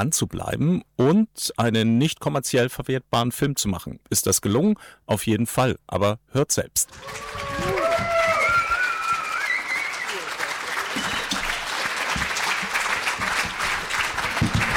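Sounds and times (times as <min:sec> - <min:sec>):
speech: 0:00.0 - 0:08.1
audience applause: 0:06.9 - 0:14.7.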